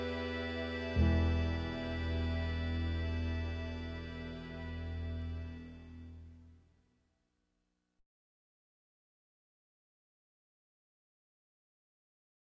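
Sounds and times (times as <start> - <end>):
bass clarinet: 0.0 - 6.4.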